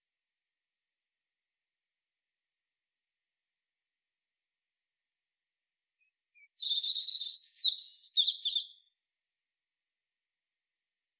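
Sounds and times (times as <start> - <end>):
European robin Erithacus rubecula singing: 6.4 - 8.9.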